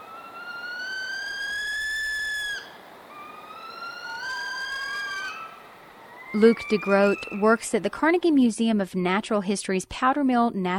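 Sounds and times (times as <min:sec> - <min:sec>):
northern saw-whet owl whining wails: 0:00.0 - 0:07.9
speech: 0:06.4 - 0:10.7.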